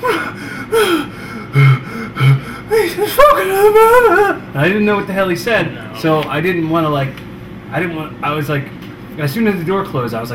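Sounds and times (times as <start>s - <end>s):
voice imitating a man panting out of breath after climbing stairs: 0.0s - 4.4s
speech: 3.2s - 10.3s.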